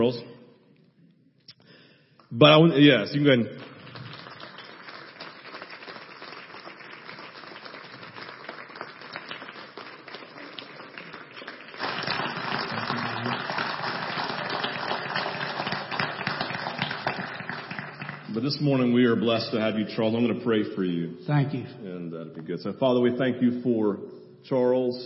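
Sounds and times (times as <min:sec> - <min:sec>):
speech: 0:00.0 - 0:00.4, 0:02.3 - 0:03.7, 0:18.5 - 0:25.0
audience clapping: 0:03.2 - 0:19.0.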